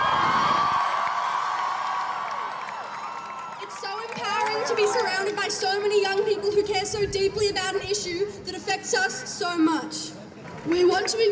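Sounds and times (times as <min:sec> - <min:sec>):
large crowd cheering at rally: 0:00.0 - 0:06.7
speech: 0:04.8 - 0:11.3.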